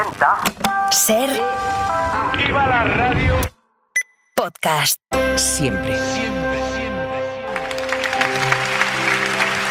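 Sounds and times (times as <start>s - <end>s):
speech: 0.2s - 3.5s, 4.6s - 6.4s
spontaneous applause: 7.5s - 9.6s.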